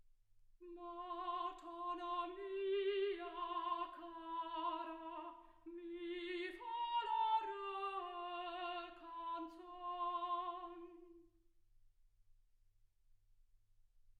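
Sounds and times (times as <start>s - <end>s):
soprano singing: 0.6s - 11.3s.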